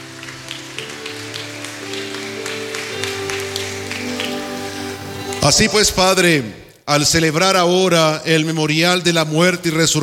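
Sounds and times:
audience applause: 0.0 - 6.0
speech: 5.4 - 10.0.

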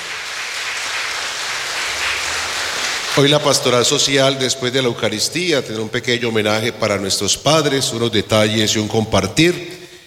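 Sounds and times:
applause for the fathers: 0.0 - 4.1
speech: 3.2 - 9.8.

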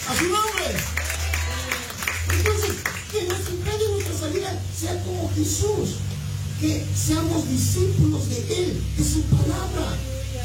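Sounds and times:
audience clapping: 0.0 - 4.5
speech: 0.1 - 1.1, 2.4 - 10.1
low hum: 0.8 - 10.4.

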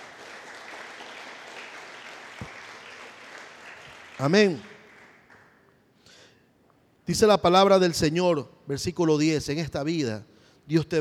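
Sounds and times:
congregation applauding during a church service: 0.0 - 5.8
speech: 4.2 - 4.7, 7.1 - 11.0.

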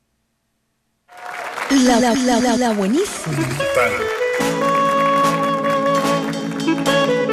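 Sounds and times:
audience applause: 1.1 - 7.2
speech: 1.7 - 4.8.

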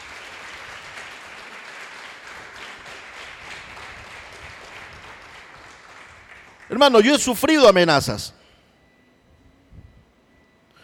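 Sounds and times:
audience applause: 0.0 - 7.0
speech: 6.7 - 8.4.

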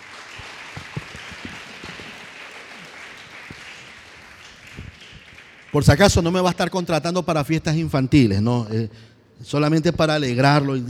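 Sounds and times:
audience applause: 0.0 - 6.1
speech: 5.7 - 10.8.

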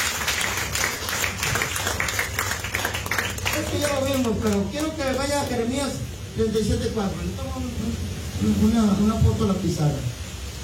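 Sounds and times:
audience applause: 0.0 - 5.6
speech: 3.8 - 10.2.

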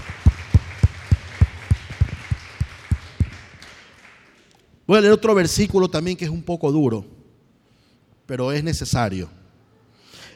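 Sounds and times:
audience applause: 0.0 - 4.5
speech: 4.9 - 7.2, 8.3 - 9.4.

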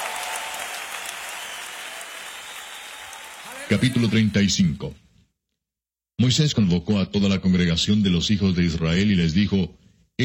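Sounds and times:
crowd audience applauding loudly: 0.0 - 4.8
speech: 3.7 - 5.0, 6.2 - 10.2.

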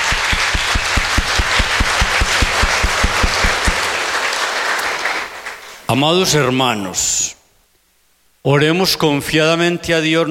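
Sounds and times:
audience applause: 0.0 - 5.9
speech: 5.9 - 7.2, 8.4 - 10.2.

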